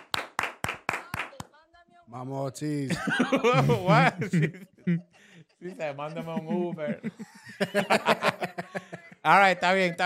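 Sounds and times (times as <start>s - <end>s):
round of applause: 0.0s - 1.6s
speech: 2.1s - 10.0s
laughter: 2.9s - 10.0s.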